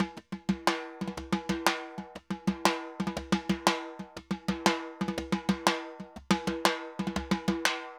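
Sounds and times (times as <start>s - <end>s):
timba Latin drums and percussion: 0.0s - 7.9s.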